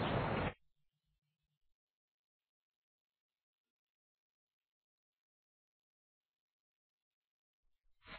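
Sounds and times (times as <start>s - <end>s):
birds in a square: 0.0s - 0.6s.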